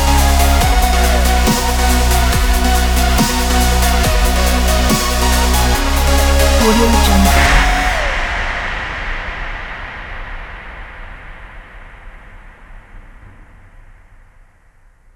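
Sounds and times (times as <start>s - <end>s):
space dubstep intro: 0.0s - 8.3s.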